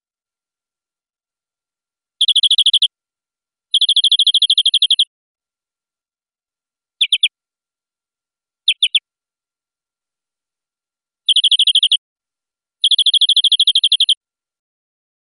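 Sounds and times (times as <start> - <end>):
European greenfinch buzzy trill: 2.2 - 2.9, 3.7 - 5.1, 7.0 - 7.3, 8.7 - 9.0, 11.3 - 12.0, 12.8 - 14.2.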